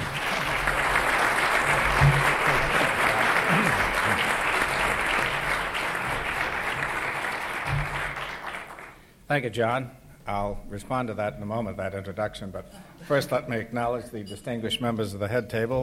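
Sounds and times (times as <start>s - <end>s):
audience applause welcoming the Treasury Secretary: 0.0s - 9.0s
speech: 9.3s - 15.8s.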